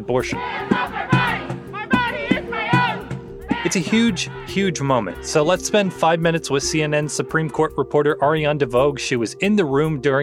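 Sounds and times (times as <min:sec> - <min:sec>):
speech: 0:00.0 - 0:00.9, 0:03.6 - 0:10.2
protesters chanting and shouting outside the court: 0:00.2 - 0:06.2.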